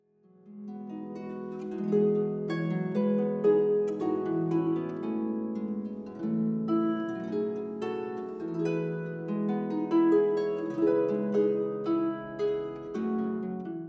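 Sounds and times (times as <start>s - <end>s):
harp: 0.3s - 13.8s.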